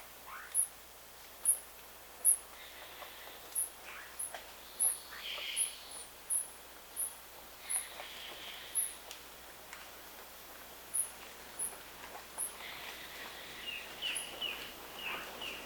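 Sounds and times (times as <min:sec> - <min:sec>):
soft background hiss: 0:00.0 - 0:15.6
bird repeating short very high chirps: 0:00.3 - 0:00.7, 0:03.6 - 0:06.5, 0:13.7 - 0:15.6.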